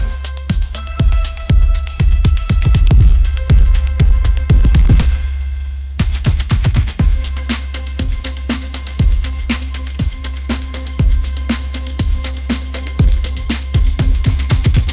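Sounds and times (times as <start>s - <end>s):
sunshine pop groove ringtone: 0.0s - 5.2s, 6.0s - 14.9s.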